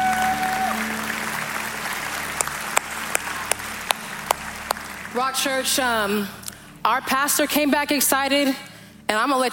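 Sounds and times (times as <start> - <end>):
audience applause: 0.0 - 5.6
speech: 5.2 - 9.5.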